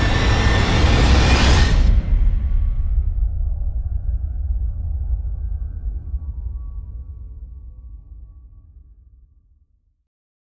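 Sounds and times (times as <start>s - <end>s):
scary theme music: 0.0s - 9.0s.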